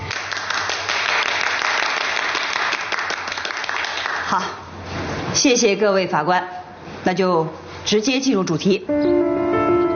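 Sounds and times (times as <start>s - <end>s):
applause: 0.0s - 4.4s
speech: 5.4s - 9.2s.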